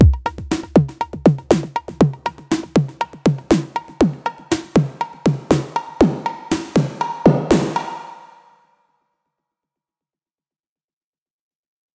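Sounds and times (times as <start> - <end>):
new drum machine beat: 0.0 - 8.2.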